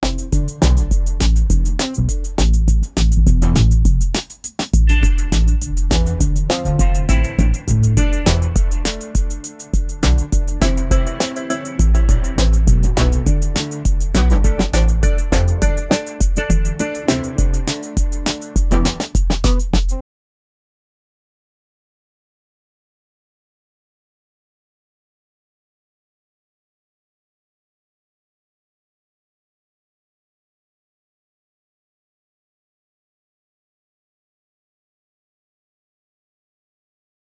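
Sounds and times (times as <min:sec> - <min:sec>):
upbeat pop track: 0:00.0 - 0:03.7, 0:04.7 - 0:20.0.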